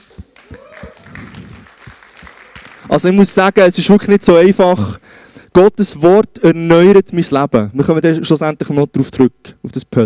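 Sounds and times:
audience clapping: 0:00.0 - 0:03.3
speech: 0:02.9 - 0:10.0.

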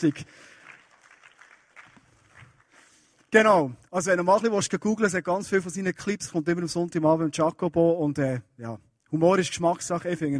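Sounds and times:
speech: 0:00.0 - 0:00.5, 0:03.3 - 0:10.3
applause: 0:00.0 - 0:03.3.

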